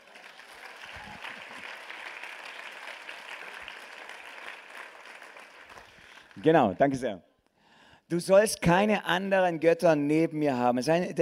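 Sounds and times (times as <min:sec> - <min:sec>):
audience applause: 0:00.0 - 0:06.8
speech: 0:06.4 - 0:07.3, 0:08.1 - 0:11.2.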